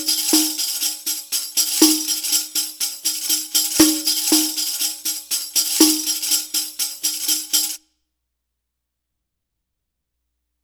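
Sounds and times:
Arabic rhythm percussion: 0:00.0 - 0:07.8.

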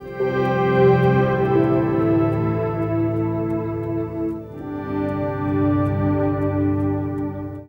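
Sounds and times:
acoustic drone: 0:00.0 - 0:07.6.

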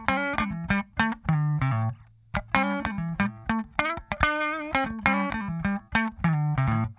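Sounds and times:
funk guitar: 0:00.0 - 0:06.9.

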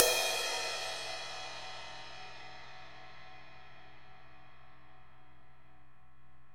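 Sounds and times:
ride cymbal mid bell: 0:00.0 - 0:03.3.

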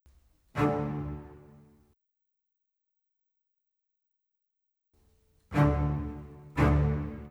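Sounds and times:
orchestral cello: 0:00.5 - 0:01.9, 0:05.4 - 0:07.2.

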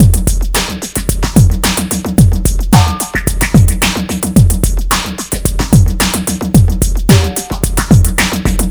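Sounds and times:
NRG trance drum break: 0:00.0 - 0:08.7.

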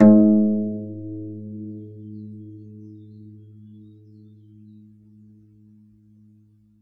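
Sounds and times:
hook harp: 0:00.0 - 0:04.9.

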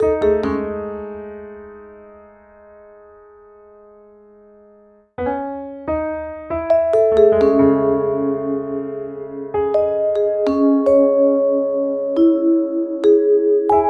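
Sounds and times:
cinematic urban funk piano and vibes: 0:00.0 - 0:01.4, 0:06.7 - 0:13.8.

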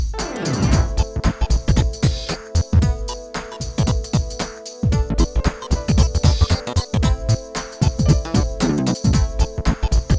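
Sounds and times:
music loop: 0:00.2 - 0:10.1.

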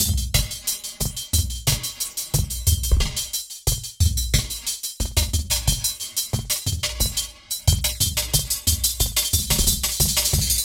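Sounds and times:
square chops downbeat dance groove at 90 BPM: 0:00.0 - 0:10.6.

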